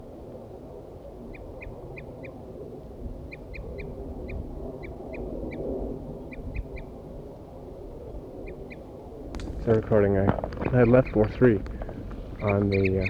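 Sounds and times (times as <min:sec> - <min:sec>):
low rumble: 0:09.4 - 0:13.0
wild male birds calling: 0:09.4 - 0:13.0
speech: 0:09.7 - 0:11.8, 0:12.4 - 0:13.0.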